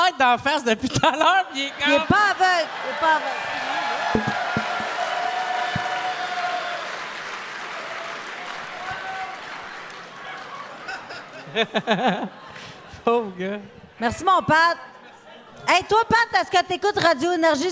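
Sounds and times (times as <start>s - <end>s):
speech: 0.1s - 4.5s, 11.5s - 12.4s, 13.0s - 14.9s, 15.6s - 17.7s
laughter: 0.8s - 5.0s, 10.2s - 13.3s
audience applause: 2.2s - 11.2s
sharp thumps: 4.2s - 5.0s.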